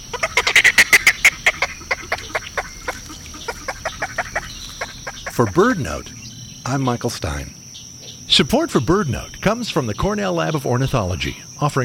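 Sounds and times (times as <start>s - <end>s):
snowy egret harsh raspy croaking calls: 0.0s - 6.7s
speech: 5.4s - 7.6s, 8.3s - 11.8s.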